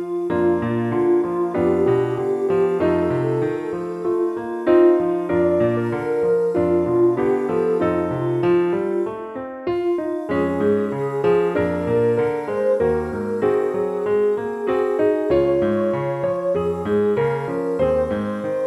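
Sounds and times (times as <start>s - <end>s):
piano study in E-flat: 0.0s - 18.6s.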